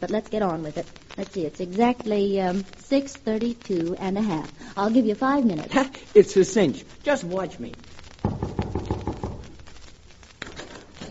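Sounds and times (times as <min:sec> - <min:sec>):
speech: 0:00.0 - 0:07.9
knocking on a door: 0:08.2 - 0:09.6.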